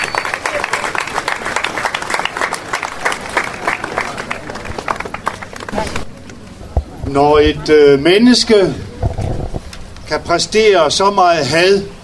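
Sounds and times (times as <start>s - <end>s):
audience applause: 0.0s - 6.1s
speech: 7.1s - 8.8s, 10.1s - 11.9s.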